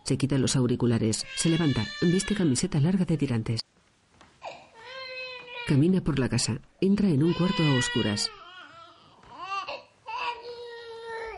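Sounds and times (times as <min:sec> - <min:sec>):
speech: 0:00.1 - 0:03.8, 0:05.7 - 0:08.4
baby crying: 0:01.3 - 0:02.5, 0:04.4 - 0:05.7, 0:07.2 - 0:11.3.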